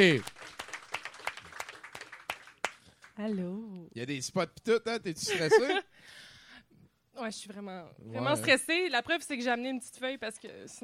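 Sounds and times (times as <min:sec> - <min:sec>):
speech: 0:00.0 - 0:00.3, 0:03.2 - 0:06.2, 0:07.2 - 0:10.8
audience applause greeting a performer on stage: 0:00.0 - 0:03.2
laughter: 0:05.2 - 0:05.9.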